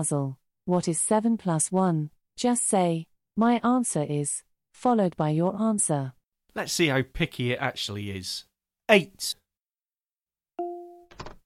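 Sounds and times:
speech: 0:00.0 - 0:09.4
two-tone chime of a door-unlocking sound effect: 0:10.6 - 0:11.1.

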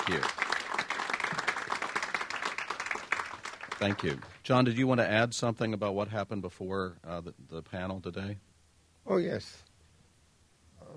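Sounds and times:
audience round of applause: 0:00.0 - 0:04.4
speech: 0:03.8 - 0:09.7.

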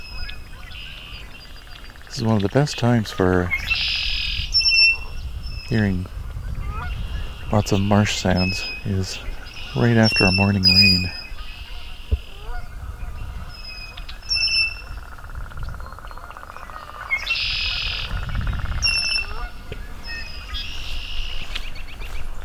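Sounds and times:
American robin singing: 0:00.0 - 0:22.4
speech: 0:02.2 - 0:03.9, 0:05.7 - 0:06.2, 0:07.5 - 0:11.2.

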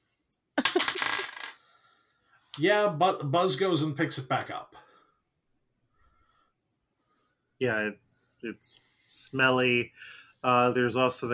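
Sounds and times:
small die clattering across a hard surface: 0:00.6 - 0:01.6
speech: 0:02.6 - 0:04.9, 0:07.6 - 0:11.3.

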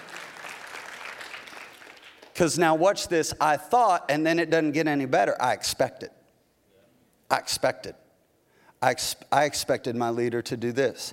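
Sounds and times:
audience applause: 0:00.0 - 0:02.3
speech: 0:02.4 - 0:06.2, 0:07.3 - 0:08.0, 0:08.8 - 0:11.1.

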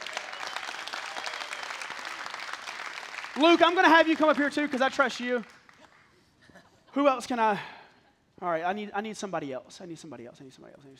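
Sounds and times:
audience applause: 0:00.0 - 0:06.0
speech: 0:03.4 - 0:05.6, 0:06.9 - 0:07.7, 0:08.4 - 0:10.9.

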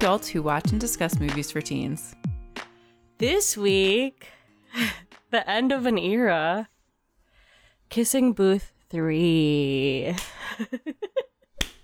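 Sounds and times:
speech: 0:00.0 - 0:02.2, 0:03.2 - 0:06.7, 0:07.9 - 0:11.0
sharp bright hand clap: 0:05.1 - 0:05.3, 0:10.1 - 0:10.4, 0:11.6 - 0:11.8.

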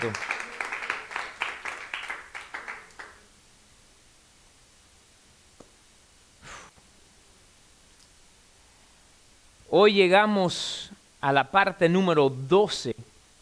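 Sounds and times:
speech: 0:00.0 - 0:00.3, 0:09.8 - 0:12.9
audience applause: 0:00.0 - 0:03.2.

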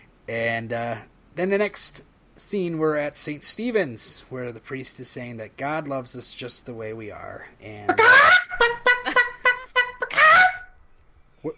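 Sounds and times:
speech: 0:00.3 - 0:08.4
chicken clucking and squawking: 0:07.9 - 0:10.7.

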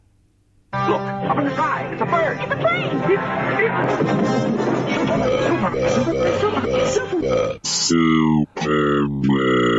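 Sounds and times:
speech: 0:01.0 - 0:09.7
loud exaggerated burp: 0:05.0 - 0:09.7.

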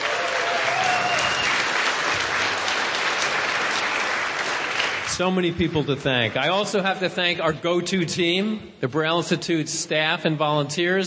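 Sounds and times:
audience applause: 0:00.0 - 0:05.5
speech: 0:05.2 - 0:11.0.

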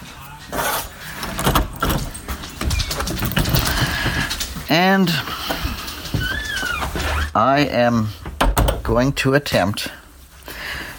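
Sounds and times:
exercise room door opening: 0:01.1 - 0:07.6, 0:08.2 - 0:09.2
speech: 0:04.7 - 0:05.4, 0:07.4 - 0:08.2, 0:08.9 - 0:10.0.

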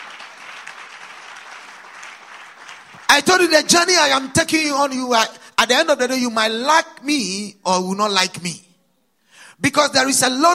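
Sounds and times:
audience applause: 0:00.0 - 0:03.2
speech: 0:03.2 - 0:08.6, 0:09.6 - 0:10.5.

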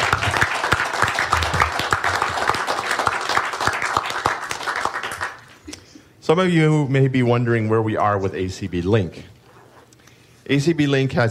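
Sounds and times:
audience applause: 0:00.0 - 0:05.5
speech: 0:06.3 - 0:09.3, 0:10.5 - 0:11.3.

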